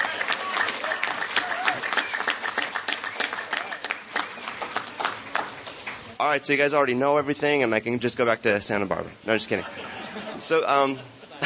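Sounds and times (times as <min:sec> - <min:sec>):
audience applause: 0:00.0 - 0:06.2
speech: 0:06.3 - 0:11.2
laughter: 0:09.5 - 0:11.4.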